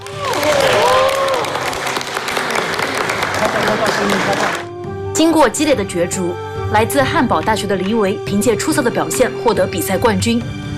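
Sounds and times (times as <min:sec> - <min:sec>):
audience applause: 0:00.0 - 0:04.7
speech: 0:04.0 - 0:04.6, 0:05.2 - 0:10.6.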